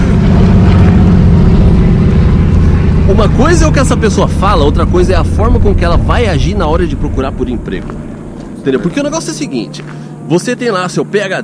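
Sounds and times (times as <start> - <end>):
airplane passing overhead: 0.0 - 11.4
speech: 3.2 - 11.4.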